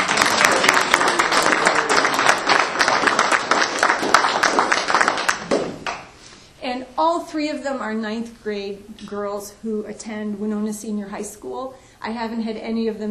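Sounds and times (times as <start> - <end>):
crowd applauding: 0.0 - 6.1
speech: 7.3 - 13.0.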